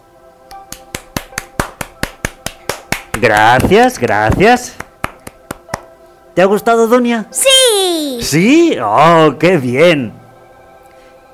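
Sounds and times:
audience applause: 0.8s - 5.8s
speech: 3.2s - 4.8s, 6.4s - 10.2s.

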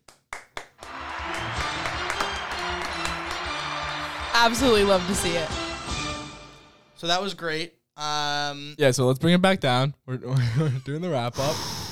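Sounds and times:
round of applause: 0.0s - 6.2s
speech: 4.4s - 5.7s, 7.0s - 11.7s.

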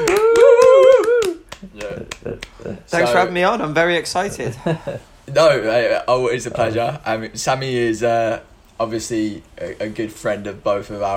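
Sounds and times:
hand clapping: 0.0s - 2.8s
wavering vocal cheer: 0.0s - 2.9s
speech: 2.9s - 11.1s.

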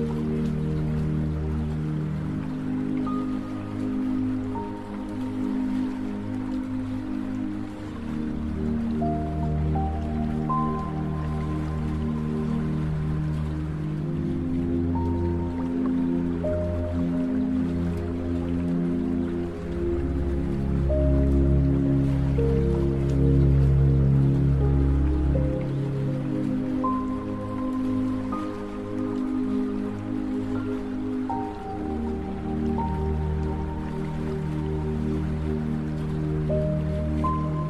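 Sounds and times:
gentle rain-like hiss: 0.0s - 37.6s
meditation music of low sustained drone tones: 0.0s - 37.6s.

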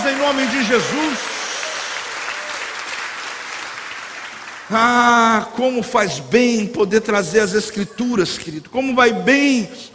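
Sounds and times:
audience applause: 0.0s - 5.1s
speech: 0.2s - 1.3s, 4.7s - 9.9s.

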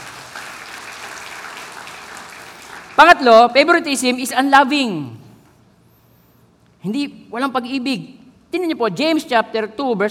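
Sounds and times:
church congregation clapping during a sermon: 0.0s - 4.2s
speech: 3.0s - 5.2s, 6.8s - 10.0s.

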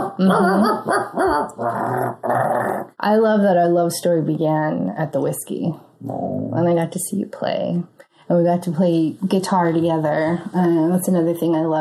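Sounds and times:
person barking like a dog: 0.0s - 1.7s
speech: 0.1s - 11.7s.

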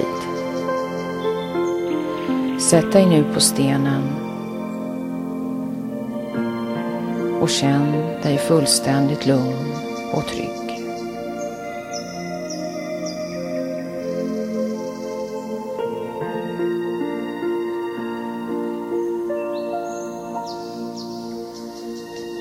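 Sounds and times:
forest birdsong: 0.0s - 22.4s
speech: 2.6s - 4.3s, 7.4s - 10.6s.

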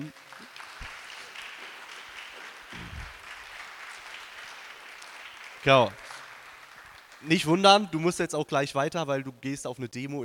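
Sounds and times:
audience applause: 0.0s - 7.6s
heavy low thumps: 2.8s - 3.1s
speech: 5.6s - 6.0s, 7.2s - 10.2s.

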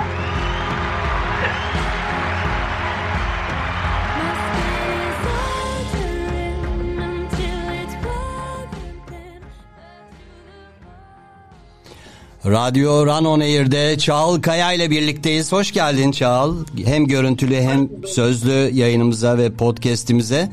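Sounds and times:
crowd clapping and cheering: 0.0s - 8.4s
musical backing with a thumping low beat: 0.0s - 9.1s
speech: 12.5s - 20.5s.

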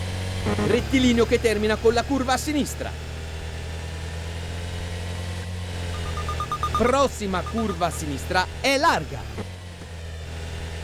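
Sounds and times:
car engine drone from an audio racing video game: 0.0s - 10.8s
speech: 0.4s - 3.1s, 6.8s - 9.6s
short high beeps: 6.0s - 8.1s.

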